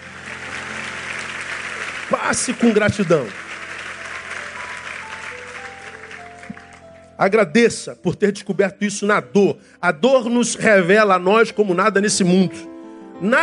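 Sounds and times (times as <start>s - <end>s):
audience applause: 0.0s - 7.1s
speech: 2.1s - 3.4s, 7.2s - 13.4s.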